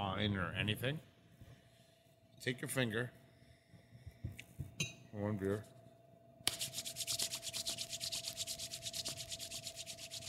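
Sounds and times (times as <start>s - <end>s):
speech: 0.0s - 1.1s, 2.4s - 3.2s, 4.8s - 5.8s
palms rubbing together after a finger is dipped in beer: 6.5s - 10.2s.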